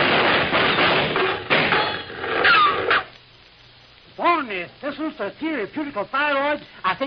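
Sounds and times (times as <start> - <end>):
gunshots: 0.0 - 3.1
speech: 5.0 - 7.0.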